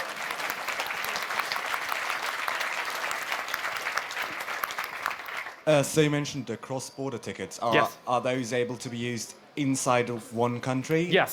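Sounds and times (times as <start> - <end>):
crowd clapping: 0.0 - 5.7
speech: 5.7 - 11.3.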